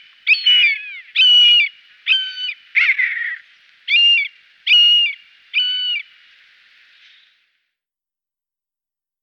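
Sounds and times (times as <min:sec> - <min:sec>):
common buzzard giving a drawn-out mewing scream: 0:00.5 - 0:05.9.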